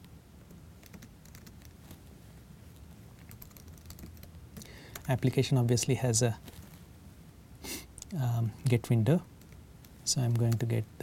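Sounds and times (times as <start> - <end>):
faint computer keyboard typing: 0.8 - 1.8, 3.2 - 5.1
speech: 5.1 - 6.6, 8.4 - 9.3, 10.1 - 11.0.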